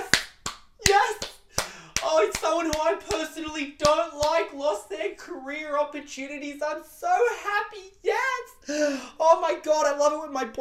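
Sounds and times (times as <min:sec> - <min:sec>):
hand claps: 0:00.0 - 0:04.5
speech: 0:02.2 - 0:10.5.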